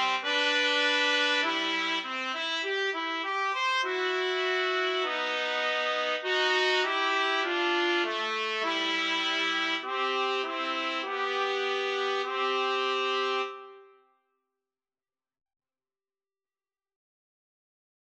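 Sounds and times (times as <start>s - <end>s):
trumpet trio playing a wedding march: 0.0s - 13.8s.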